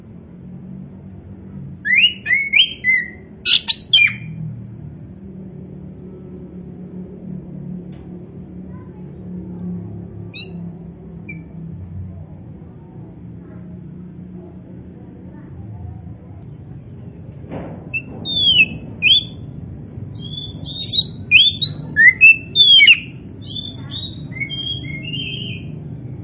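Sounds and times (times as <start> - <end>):
low hum: 0.0 - 26.2
Oriental magpie-robin singing: 1.8 - 4.4, 10.3 - 11.6, 17.9 - 19.5, 20.1 - 25.9.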